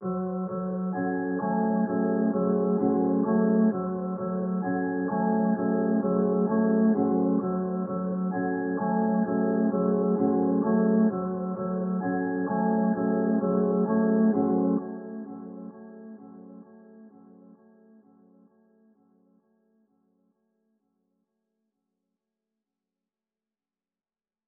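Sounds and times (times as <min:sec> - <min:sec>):
130 bpm music track: 0:00.0 - 0:16.7.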